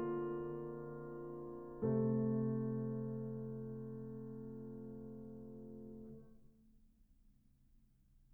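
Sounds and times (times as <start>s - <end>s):
piano lullaby: 0.0s - 6.4s.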